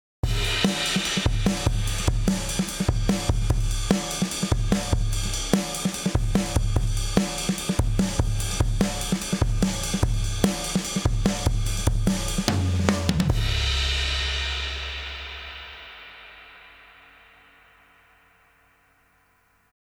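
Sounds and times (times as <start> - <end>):
Gravity VCA drums: 0.2 - 18.8.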